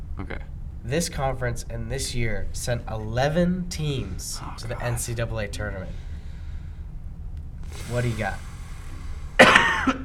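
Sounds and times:
speech: 0.2 - 6.1, 7.8 - 8.5
sneeze: 9.4 - 10.0.

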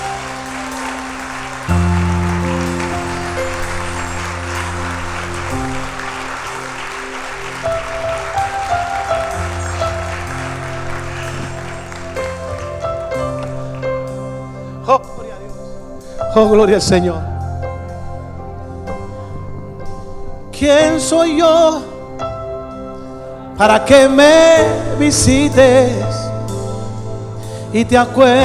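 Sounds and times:
audience applause: 0.0 - 14.3
speech: 16.4 - 17.3, 20.6 - 21.9, 23.6 - 26.2, 27.7 - 28.4.

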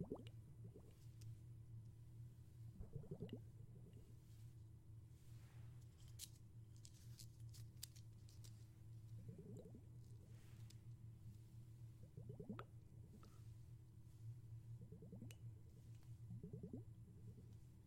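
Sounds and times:
deep gurgling bubbles underwater: 0.0 - 0.8, 2.8 - 3.4, 12.1 - 12.7, 16.4 - 17.0
steady low underwater hum: 0.0 - 5.9, 8.7 - 17.8
small bright ticks and clicks: 5.9 - 8.7.

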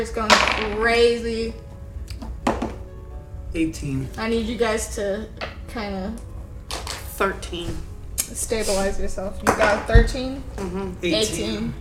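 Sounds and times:
speech: 0.0 - 1.7, 3.6 - 6.3, 7.2 - 11.7
four-sided die dropped on table: 0.3 - 0.8.

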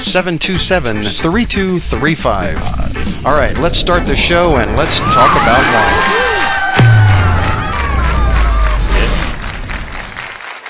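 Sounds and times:
speech: 0.1 - 6.2
crowd cheering: 4.8 - 10.6.

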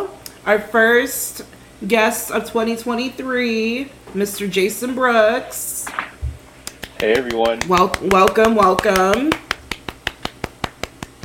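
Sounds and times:
speech: 0.0 - 6.0, 7.0 - 9.4
finger snaps in place of applause: 6.6 - 8.1, 9.1 - 11.2.

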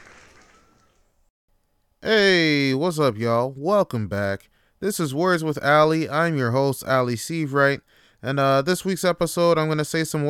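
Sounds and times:
audience applause: 0.0 - 0.8
speech: 2.0 - 10.2.

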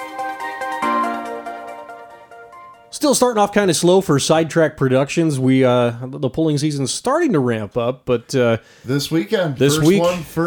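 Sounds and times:
short electronic ringtone jingle: 0.0 - 2.9
speech: 3.0 - 10.4.

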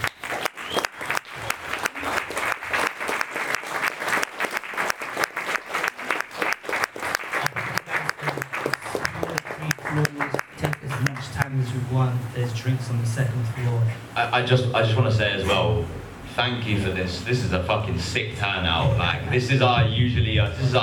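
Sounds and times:
audience applause: 0.0 - 11.6
speech: 11.6 - 20.8.

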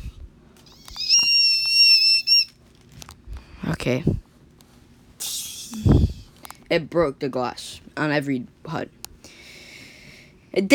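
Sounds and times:
voice imitating a scream: 0.8 - 2.5
speech: 3.8 - 4.2, 6.7 - 9.0, 10.6 - 10.7.

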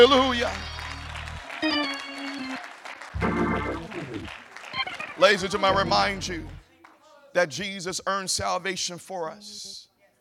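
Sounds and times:
speech: 0.0 - 0.7, 5.2 - 6.6, 7.4 - 9.9
audience clapping hands: 0.0 - 7.0.

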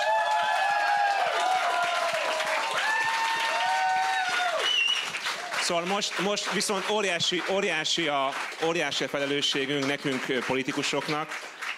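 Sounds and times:
crowd applause: 0.0 - 11.7
people cheering: 0.0 - 11.7
whistle-like tones: 4.6 - 5.2
speech: 5.7 - 11.5.

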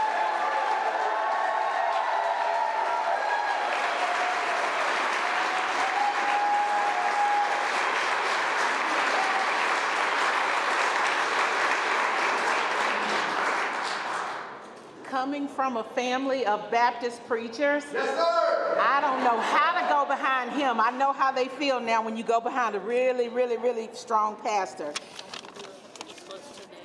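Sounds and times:
rally crowd applauding and cheering for Medicaid expansion in Kansas: 0.0 - 14.6
speech: 15.2 - 25.2.

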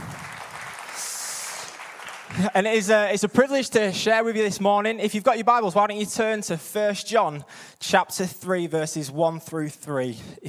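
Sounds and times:
crowd applauding the band: 0.0 - 3.3
speech: 2.3 - 10.4.

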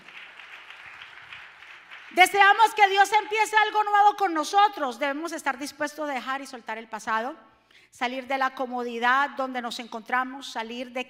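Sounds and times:
loud applause from audience: 0.0 - 2.2
speech: 2.1 - 11.0.

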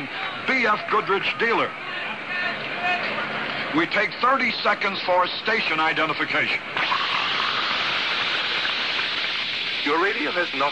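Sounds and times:
speech: 0.5 - 3.0, 3.7 - 6.9, 9.8 - 10.7
fizz of carbonated mineral water: 6.8 - 10.7.

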